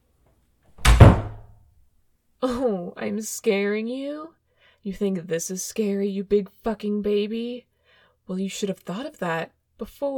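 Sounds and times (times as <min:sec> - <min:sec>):
door being opened: 0:00.8 - 0:01.5
speech: 0:02.4 - 0:07.7, 0:08.3 - 0:10.1.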